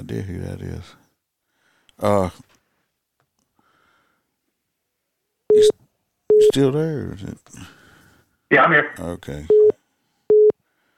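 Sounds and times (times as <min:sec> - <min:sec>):
speech: 0:00.1 - 0:01.1, 0:02.0 - 0:02.6, 0:06.6 - 0:07.8, 0:08.5 - 0:09.6
phone call alert electronic beep: 0:05.5 - 0:06.6, 0:08.7 - 0:10.6.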